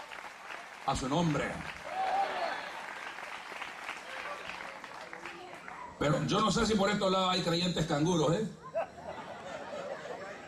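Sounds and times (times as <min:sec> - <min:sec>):
audience applause: 0:00.0 - 0:06.0
speech: 0:00.8 - 0:01.8, 0:06.0 - 0:09.0
laughter: 0:08.6 - 0:10.4.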